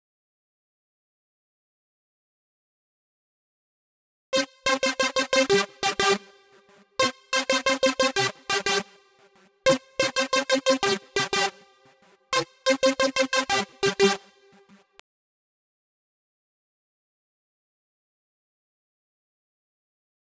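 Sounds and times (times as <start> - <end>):
synth: 4.4 - 15.0.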